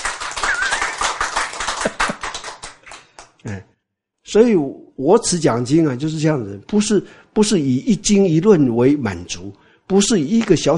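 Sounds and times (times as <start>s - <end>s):
crowd clapping: 0.0s - 3.4s
speech: 3.4s - 3.7s, 4.3s - 10.7s.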